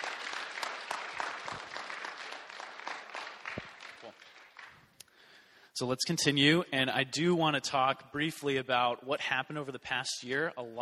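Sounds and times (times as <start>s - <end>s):
audience applause: 0.0s - 4.8s
speech: 5.8s - 10.7s.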